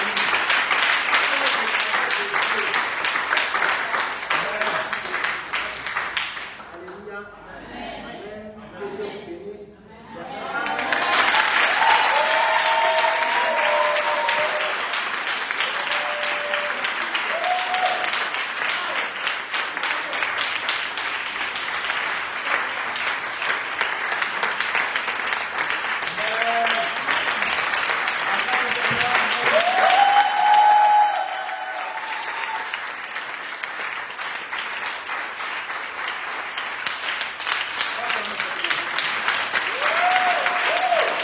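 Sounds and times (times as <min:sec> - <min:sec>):
audience applauding: 0:00.0 - 0:06.8, 0:10.4 - 0:41.2
faint voices and whoops: 0:10.2 - 0:14.8, 0:15.7 - 0:18.2, 0:29.4 - 0:32.8, 0:39.7 - 0:41.2.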